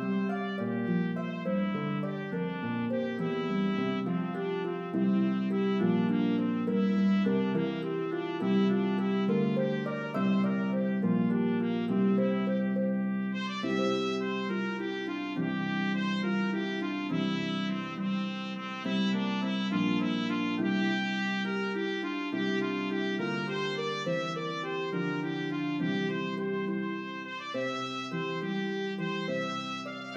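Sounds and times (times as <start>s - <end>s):
harp: 0.0s - 30.1s
melody on C trumpet: 0.0s - 30.1s.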